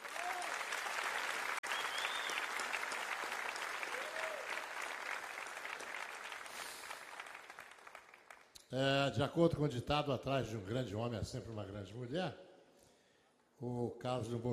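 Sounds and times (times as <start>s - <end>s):
audience applause for a band: 0.0s - 8.5s
speech: 8.7s - 12.4s, 13.6s - 14.5s.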